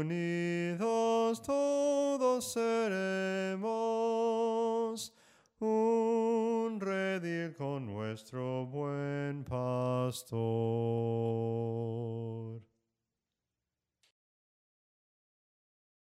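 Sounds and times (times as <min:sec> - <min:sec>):
soprano singing hymns: 0:00.0 - 0:12.6.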